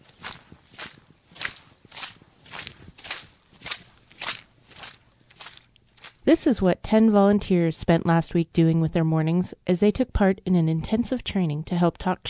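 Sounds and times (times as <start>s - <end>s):
boots slogging through tidal mud at Mud Bay: 0.0s - 6.5s
speech: 6.3s - 12.2s.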